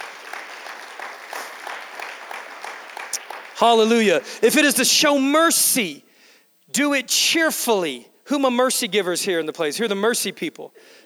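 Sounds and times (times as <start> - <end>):
room full of people clapping: 0.0 - 5.1
speech: 3.6 - 6.0, 6.7 - 11.0.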